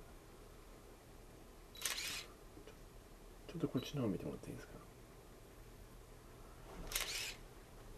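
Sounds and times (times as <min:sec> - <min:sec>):
camera shutter clicks at an anti-war peace gathering: 0:01.8 - 0:02.3, 0:06.9 - 0:07.4
speech: 0:03.5 - 0:04.9.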